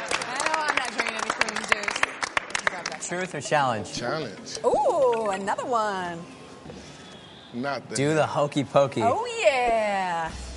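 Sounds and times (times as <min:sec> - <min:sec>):
small group clapping: 0:00.0 - 0:03.4
speech: 0:03.1 - 0:06.9, 0:07.5 - 0:10.4.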